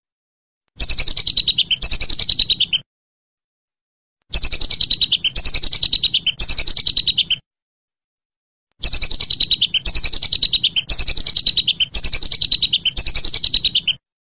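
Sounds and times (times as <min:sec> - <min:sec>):
whistling duck uttering shrill whistled notes: 0:00.8 - 0:02.8, 0:04.3 - 0:07.4, 0:08.8 - 0:14.0.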